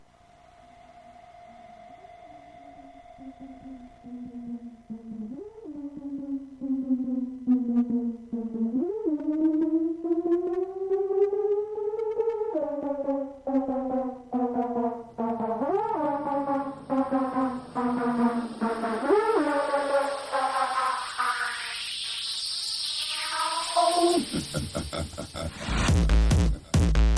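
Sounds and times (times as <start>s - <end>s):
livestream music mix: 0.0s - 27.1s
laughter: 23.8s - 26.9s.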